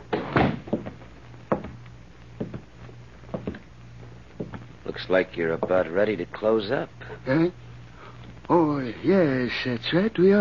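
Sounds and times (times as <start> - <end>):
faint steady hum: 0.0 - 10.3
door swinging shut with thump and rattle: 0.1 - 0.8
speech: 5.0 - 7.6, 8.5 - 10.3.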